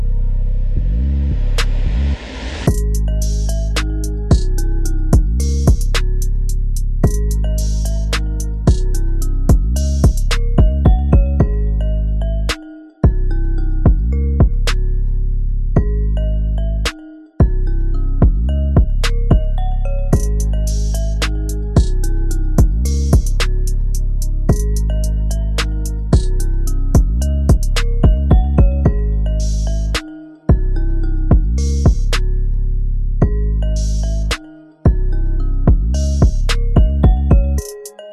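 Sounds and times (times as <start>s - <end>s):
future music in G sharp minor at 110 bpm: 0.0s - 38.1s.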